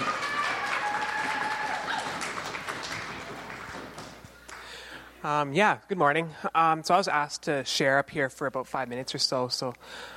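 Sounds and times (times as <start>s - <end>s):
audience applause: 0.0s - 4.8s
speech: 5.2s - 10.1s.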